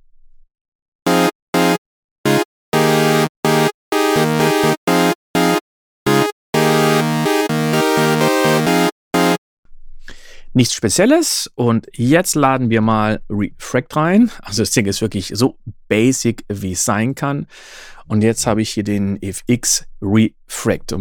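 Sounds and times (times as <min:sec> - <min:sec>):
synthesizer track with sawtooth wave played on the Retrolog: 0:01.1 - 0:09.4
speech: 0:10.6 - 0:20.9.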